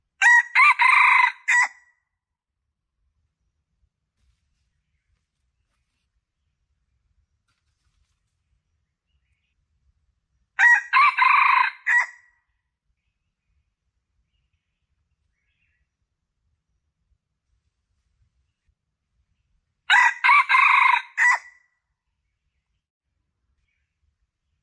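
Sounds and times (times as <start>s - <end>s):
Red junglefowl crowing: 0.2s - 1.8s, 10.6s - 12.3s, 19.9s - 21.6s.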